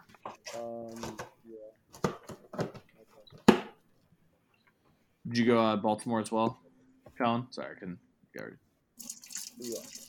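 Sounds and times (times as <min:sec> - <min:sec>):
speech: 0:05.3 - 0:06.6, 0:07.2 - 0:10.0
running tap water over hands while washing: 0:09.0 - 0:10.0.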